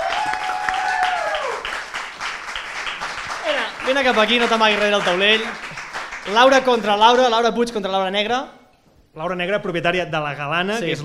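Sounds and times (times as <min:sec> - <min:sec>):
high-pitched whoop or cheer: 0:00.0 - 0:01.6
audience applause: 0:00.0 - 0:07.4
speech: 0:03.9 - 0:05.7, 0:06.3 - 0:08.6, 0:09.2 - 0:11.0.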